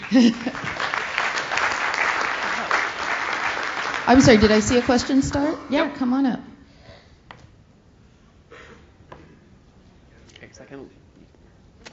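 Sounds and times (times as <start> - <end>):
audience applause: 0.0 - 5.6
speech: 0.1 - 0.7, 4.1 - 6.5.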